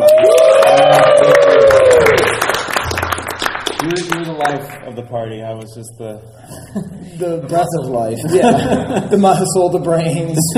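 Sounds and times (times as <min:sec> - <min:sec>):
audience applause: 0:00.0 - 0:04.9
speech: 0:04.8 - 0:10.5
laughter: 0:06.4 - 0:09.7.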